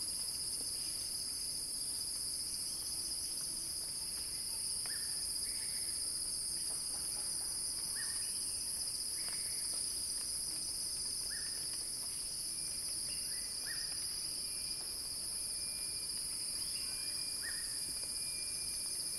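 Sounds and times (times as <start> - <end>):
cicada chorus droning: 0.1 - 19.1.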